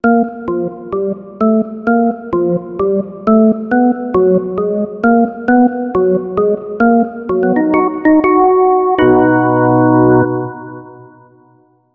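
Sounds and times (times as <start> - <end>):
organ music: 0.0 - 11.5.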